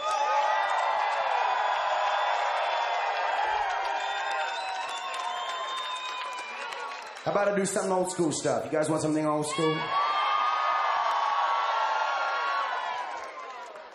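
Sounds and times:
concert crowd cheering and whooping: 0.0s - 7.2s, 9.4s - 13.9s
shrill whistles: 3.9s - 7.2s
speech: 7.2s - 10.0s.

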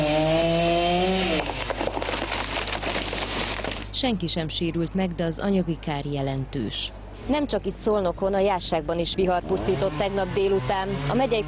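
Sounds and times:
chainsaw cutting through fallen timber: 0.0s - 3.8s, 9.6s - 11.4s
speech: 4.0s - 11.4s.

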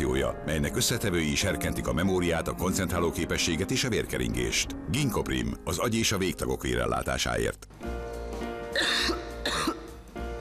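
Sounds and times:
speech: 0.2s - 7.8s
person coughing: 8.7s - 10.0s.

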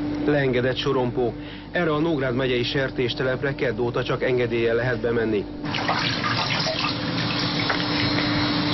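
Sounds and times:
speech: 0.2s - 6.6s
hand washing under running tap water: 5.6s - 8.6s.

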